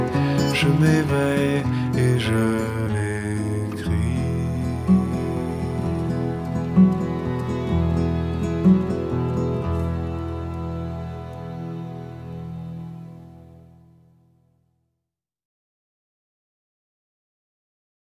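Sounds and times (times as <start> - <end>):
piano: 0.0 - 14.2.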